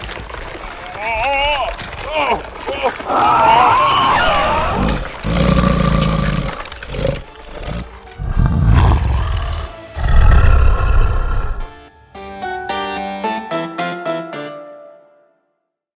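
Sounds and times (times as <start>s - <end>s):
Halloween night sound effects: 1.0s - 6.4s, 7.7s - 11.8s.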